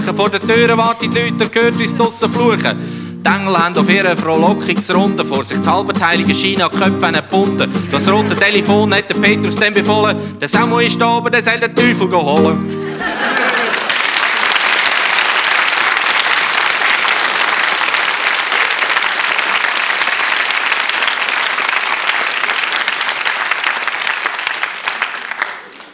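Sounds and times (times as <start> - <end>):
speech: 0.1 - 13.4
laughter: 7.8 - 8.9, 12.8 - 14.5
audience applause: 12.9 - 25.9.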